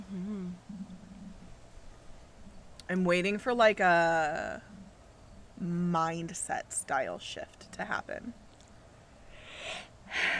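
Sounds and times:
person yawning: 0:00.0 - 0:00.6
speech: 0:02.9 - 0:04.7, 0:05.6 - 0:08.4.

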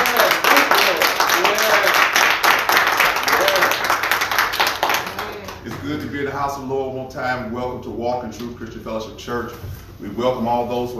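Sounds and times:
audience hand clapping in praise: 0:00.0 - 0:06.2
speech: 0:06.4 - 0:10.9.

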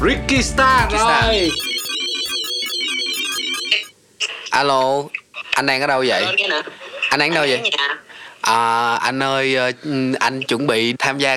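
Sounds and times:
speech: 0:00.0 - 0:01.7, 0:04.5 - 0:11.3
phone ringtone while calling a friend: 0:01.4 - 0:03.9.

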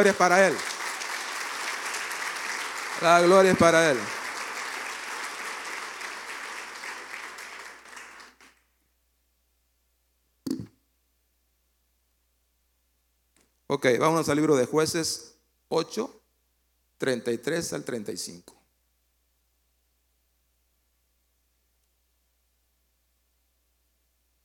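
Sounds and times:
speech: 0:00.0 - 0:00.8, 0:03.0 - 0:04.2, 0:13.7 - 0:16.2, 0:17.0 - 0:18.6
audience applause: 0:00.0 - 0:08.6.

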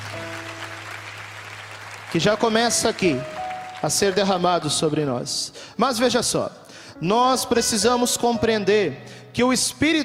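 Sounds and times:
crowd applause: 0:00.0 - 0:04.6
speech: 0:02.1 - 0:10.0.

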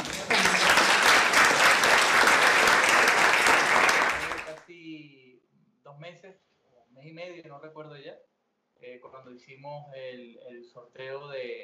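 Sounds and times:
audience applause: 0:00.0 - 0:04.6
speech: 0:07.1 - 0:11.6.

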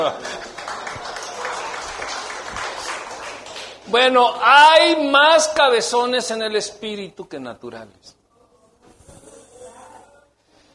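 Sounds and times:
speech: 0:00.0 - 0:00.4, 0:03.9 - 0:08.2
audience applause: 0:00.0 - 0:03.9.

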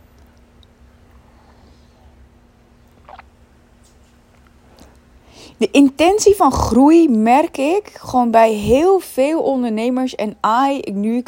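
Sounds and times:
person sipping coffee: 0:01.0 - 0:03.3
speech: 0:05.6 - 0:11.2.

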